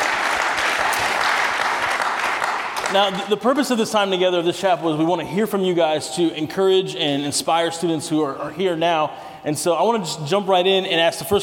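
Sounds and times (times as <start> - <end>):
audience applause: 0.0 - 3.3
speech: 2.9 - 11.4.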